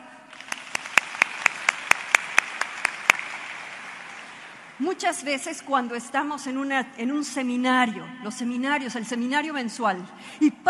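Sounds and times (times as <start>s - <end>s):
enthusiastic applause: 0.3s - 4.8s
speech: 4.8s - 10.6s.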